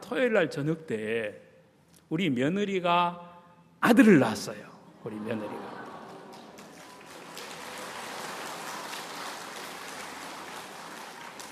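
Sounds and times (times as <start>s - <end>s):
speech: 0.1s - 1.5s, 2.1s - 5.8s
audience clapping: 5.4s - 11.5s.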